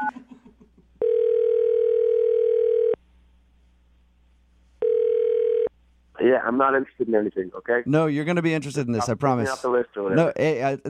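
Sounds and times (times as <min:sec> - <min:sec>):
telephone dialing tone: 0:01.0 - 0:03.0, 0:04.8 - 0:05.7
speech: 0:06.3 - 0:10.8.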